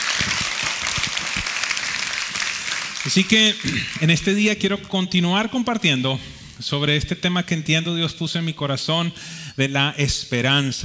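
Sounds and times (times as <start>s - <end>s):
audience applause: 0.0s - 4.1s
speech: 3.0s - 10.8s.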